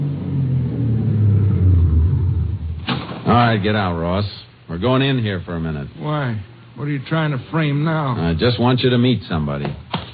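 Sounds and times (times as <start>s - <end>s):
car engine rumbling as the car drives: 0.0s - 4.1s
speech: 3.3s - 9.8s.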